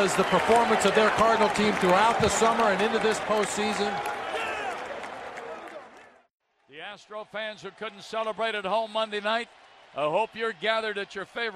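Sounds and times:
speech: 0:00.0 - 0:04.2, 0:06.9 - 0:11.5
baseball fans in St. Louis standing and applauding: 0:00.0 - 0:11.5.

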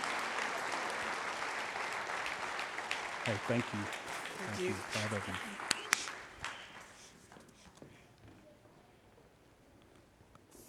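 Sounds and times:
crowd applauding: 0:00.0 - 0:07.4
speech: 0:03.2 - 0:05.7.

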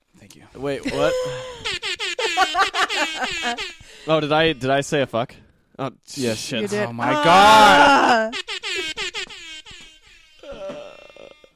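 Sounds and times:
speech: 0:00.5 - 0:01.8, 0:02.4 - 0:08.9
laughter: 0:00.8 - 0:04.4
air horn blast: 0:01.6 - 0:04.7, 0:07.2 - 0:10.6.

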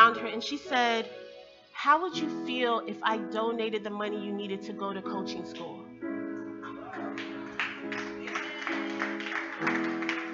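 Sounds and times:
speech: 0:00.4 - 0:01.2, 0:01.8 - 0:05.8
audience clapping: 0:07.0 - 0:10.3.

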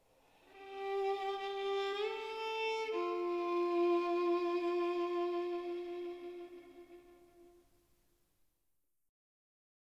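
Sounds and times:
violin: 0:00.4 - 0:07.6.

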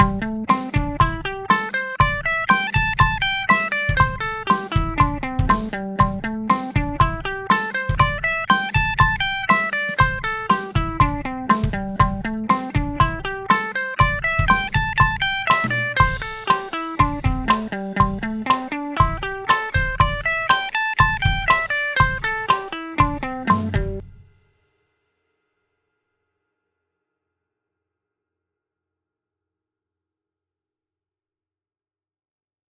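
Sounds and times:
guitar eighth notes in A minor: 0:00.0 - 0:24.0.

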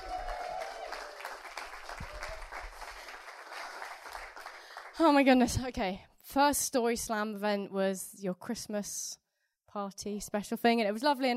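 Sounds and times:
faint cheers: 0:00.0 - 0:02.8
crowd applauding steadily: 0:00.0 - 0:05.0
speech: 0:05.0 - 0:11.3.

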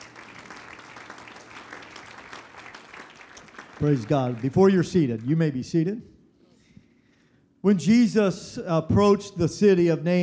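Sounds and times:
audience clapping hands: 0:00.0 - 0:05.4
speech: 0:03.8 - 0:06.1, 0:07.6 - 0:10.2.

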